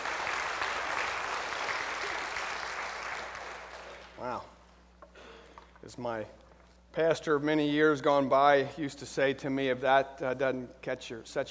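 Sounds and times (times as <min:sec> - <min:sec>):
audience applause: 0:00.0 - 0:04.2
speech: 0:04.2 - 0:04.6, 0:05.8 - 0:11.4.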